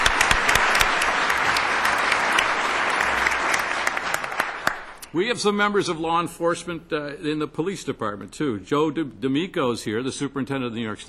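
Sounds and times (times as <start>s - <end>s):
audience applause: 0.0s - 5.1s
speech: 5.2s - 11.0s.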